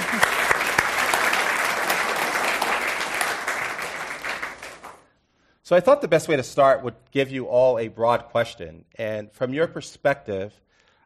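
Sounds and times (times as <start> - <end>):
panel-discussion audience applause welcoming panelists: 0.0 - 5.1
speech: 5.7 - 11.0.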